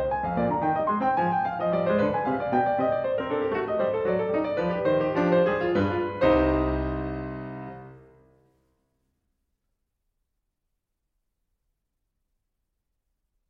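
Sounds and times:
baroque keyboard courante in C minor: 0.0s - 8.0s.

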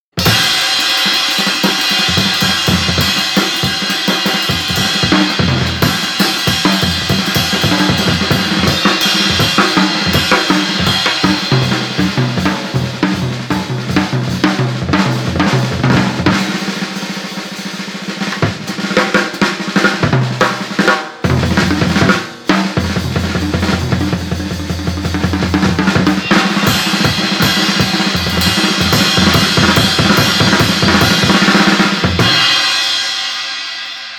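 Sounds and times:
drum solo: 0.1s - 34.1s.

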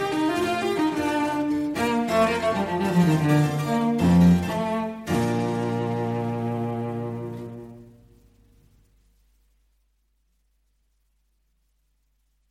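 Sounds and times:
cello sonata allegro movement: 0.0s - 8.2s.

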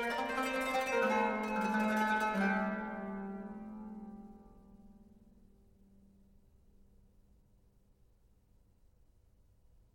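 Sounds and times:
qanun playing a postlude: 0.0s - 4.8s.

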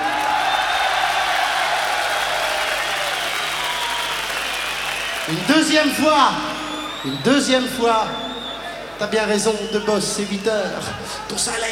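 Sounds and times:
audience applause: 0.0s - 7.2s
speech: 5.3s - 8.2s, 9.0s - 11.7s.

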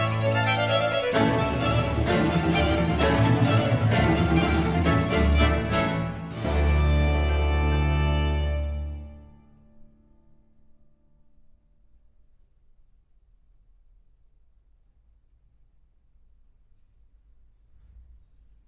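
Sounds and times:
strings playing an allegro in D minor: 0.0s - 9.8s.

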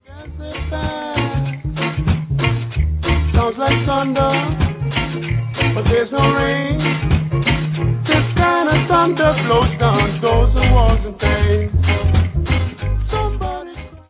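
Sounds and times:
vocals: 0.0s - 2.2s, 3.1s - 7.4s, 8.0s - 14.0s.

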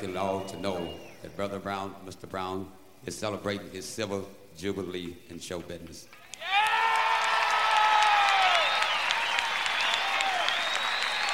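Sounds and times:
speech: 0.0s - 6.6s
audience applause: 6.4s - 11.3s.

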